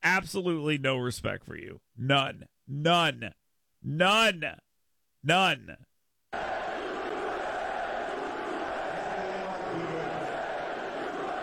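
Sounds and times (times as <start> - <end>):
speech: 0.2 - 4.6, 5.2 - 6.5
crowd booing: 6.4 - 11.4.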